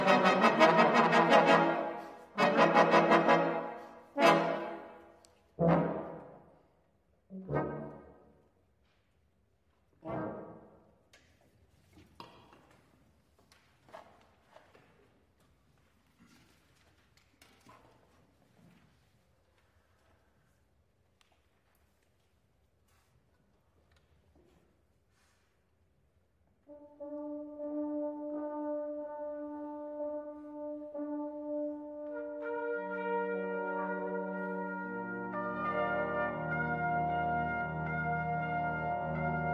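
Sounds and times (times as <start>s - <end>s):
simulated brass ensemble instrumental: 0.0s - 8.6s, 10.0s - 10.9s, 26.6s - 39.5s.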